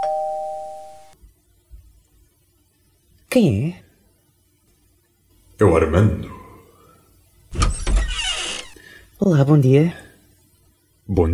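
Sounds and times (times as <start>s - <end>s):
electronic doorbell chime: 0.0s - 1.1s
speech: 3.3s - 3.8s, 5.6s - 6.3s, 9.2s - 10.1s, 11.1s - 11.3s.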